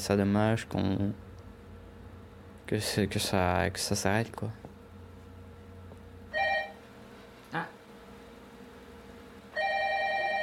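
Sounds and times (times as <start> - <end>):
speech: 0.0 - 1.3, 2.7 - 4.6
telephone bell ringing: 6.3 - 6.8, 9.5 - 10.4.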